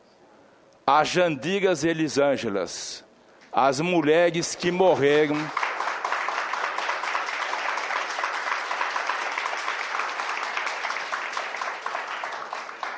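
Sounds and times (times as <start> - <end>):
speech: 0.9 - 5.6
applause in a hall during a political speech in Brazil: 4.4 - 12.9.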